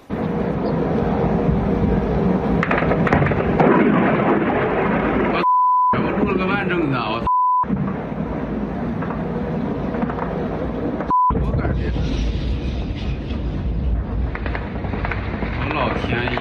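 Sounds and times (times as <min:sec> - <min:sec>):
oil refinery explosion near Moscow after a drone strike: 0:00.0 - 0:16.3
electronic bleeps: 0:05.4 - 0:06.0, 0:07.2 - 0:07.7, 0:11.1 - 0:11.4.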